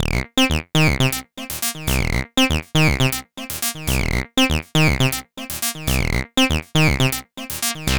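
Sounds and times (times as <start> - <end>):
UR 303 bass loops: 0.0 - 7.9.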